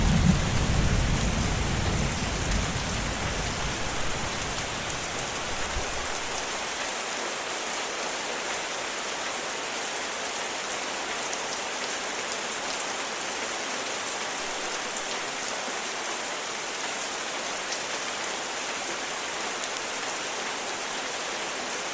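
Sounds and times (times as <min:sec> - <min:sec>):
thunder: 0:00.0 - 0:06.2
rain storm: 0:00.0 - 0:21.9.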